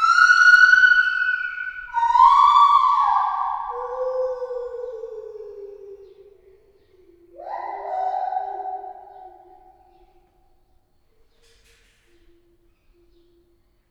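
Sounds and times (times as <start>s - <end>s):
captive lar gibbon hooting in a zoo: 0.0s - 10.0s.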